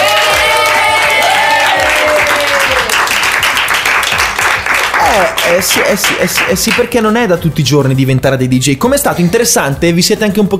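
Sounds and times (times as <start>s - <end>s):
group applause: 0.0s - 6.9s
speech: 5.2s - 10.5s.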